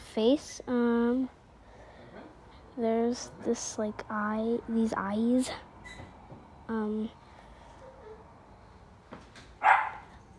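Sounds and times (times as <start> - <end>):
speech: 0.2 - 1.4, 2.8 - 6.0, 6.7 - 7.2
dog barking: 9.6 - 10.1.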